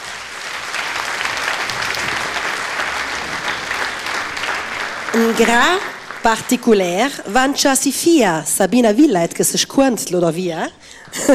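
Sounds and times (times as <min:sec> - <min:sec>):
audience applause: 0:00.0 - 0:07.7
speech: 0:05.2 - 0:11.3.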